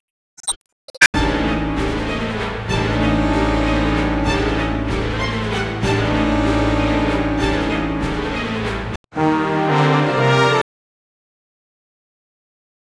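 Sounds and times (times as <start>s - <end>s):
game over music loop at 95 BPM in 4/4: 1.2s - 10.6s.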